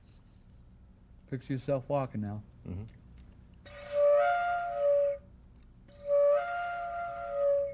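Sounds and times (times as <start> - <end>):
speech: 1.3 - 3.0
owl call played on a wooden owl flute: 3.7 - 5.3, 5.9 - 7.7.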